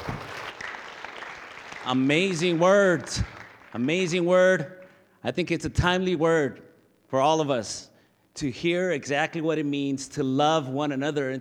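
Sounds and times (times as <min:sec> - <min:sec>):
audience applause: 0:00.0 - 0:03.9
speech: 0:01.8 - 0:11.3.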